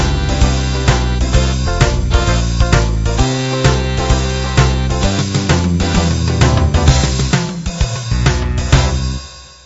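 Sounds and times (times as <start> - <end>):
blues music with breaks: 0.0 - 9.2.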